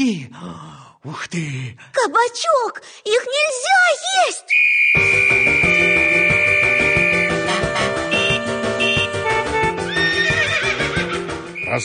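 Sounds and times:
speech: 0:00.0 - 0:06.1
dense steady bed of sustained tones: 0:05.3 - 0:09.6
horse neighing: 0:09.8 - 0:11.3.

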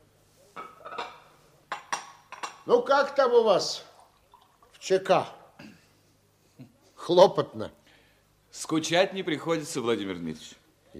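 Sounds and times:
dishes clinking: 0:00.6 - 0:02.7
speech: 0:02.6 - 0:03.9, 0:04.8 - 0:05.4, 0:07.1 - 0:07.8, 0:08.5 - 0:10.9
tea pouring from a kettle: 0:03.6 - 0:04.9.

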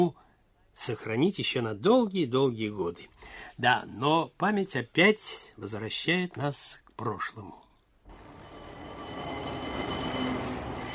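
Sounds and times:
speech: 0:00.8 - 0:07.6
faint high squealing of tram wheels: 0:08.1 - 0:10.9
tram car rumbling along: 0:08.1 - 0:10.9.

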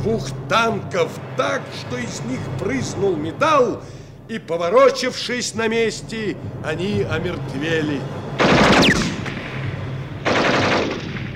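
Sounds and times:
speech: 0:00.0 - 0:08.2
machine gun fire: 0:08.4 - 0:09.6, 0:10.2 - 0:11.3.

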